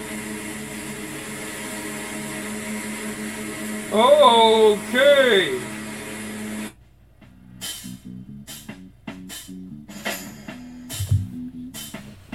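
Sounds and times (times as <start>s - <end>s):
electronic lawnmower sound effect: 0.0s - 6.8s
speech: 3.9s - 5.7s.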